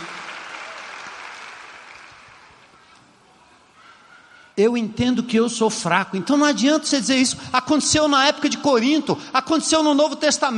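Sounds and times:
crowd clapping: 0.0 - 2.8
speech: 4.6 - 10.5.

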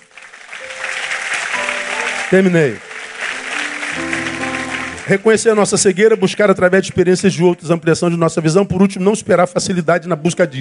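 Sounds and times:
audience applause: 0.0 - 5.9
held musical tones: 0.6 - 7.1
speech: 2.3 - 2.9, 5.1 - 10.6.

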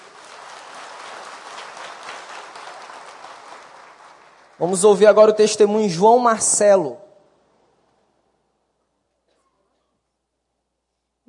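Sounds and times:
audience applauding: 0.0 - 5.3
speech: 4.6 - 7.0.

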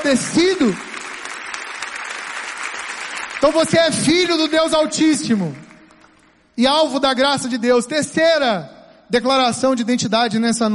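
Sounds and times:
speech: 0.0 - 1.0, 3.4 - 5.6, 6.6 - 10.7
audience applause: 0.0 - 6.3.

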